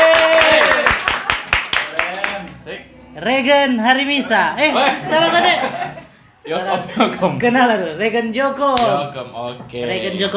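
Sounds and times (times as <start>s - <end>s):
voices and a brief cheer: 0.0s - 1.0s
crowd clapping: 0.0s - 2.6s
speech: 3.2s - 10.3s
laughter: 4.3s - 6.2s.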